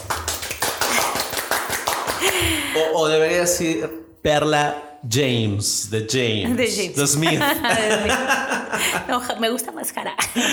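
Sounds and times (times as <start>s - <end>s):
applause: 0.0s - 2.6s
speech: 2.2s - 10.5s
laughter: 7.2s - 9.5s, 10.2s - 10.5s.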